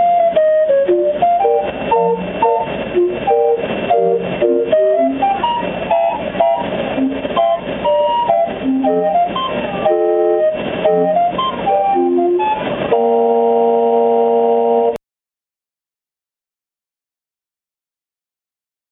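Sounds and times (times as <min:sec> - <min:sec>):
calliope: 0:00.0 - 0:15.0.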